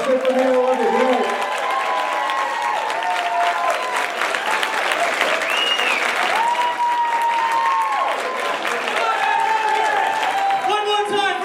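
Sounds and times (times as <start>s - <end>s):
audience applause: 0.0s - 11.4s
whoops and raised voices from a crowd: 0.6s - 8.4s, 9.0s - 10.9s.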